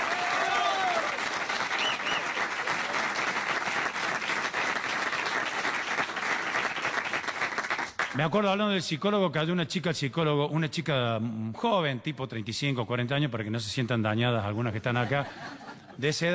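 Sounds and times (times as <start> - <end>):
whistles and cheers: 0.0 - 2.5
crowd applause: 0.0 - 8.2
speech: 8.2 - 16.3
laughter: 14.8 - 16.2.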